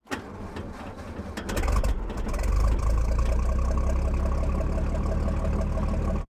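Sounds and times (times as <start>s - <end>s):
engines: 0.0s - 6.2s.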